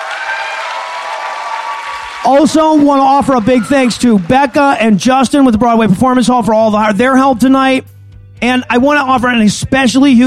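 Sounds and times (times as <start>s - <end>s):
audience applause: 0.0s - 5.0s
speech: 2.2s - 10.2s.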